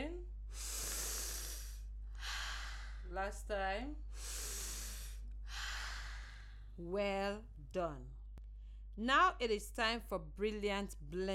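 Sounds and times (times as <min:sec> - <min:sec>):
person breathing in and out during a guided exercise: 0:00.5 - 0:03.2, 0:04.0 - 0:06.8
speech: 0:03.2 - 0:04.3, 0:06.8 - 0:08.2, 0:09.0 - 0:11.3.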